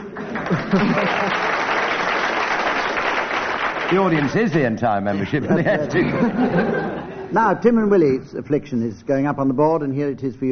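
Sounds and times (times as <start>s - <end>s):
laughter: 0.0s - 1.7s, 5.1s - 7.4s
studio audience applause: 0.0s - 5.1s
speech: 0.5s - 1.6s, 3.9s - 10.5s.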